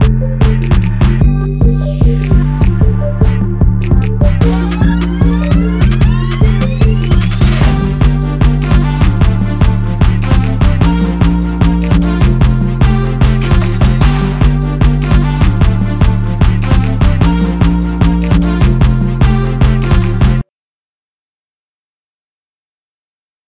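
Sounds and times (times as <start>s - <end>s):
jersey club music: 0.0s - 20.4s.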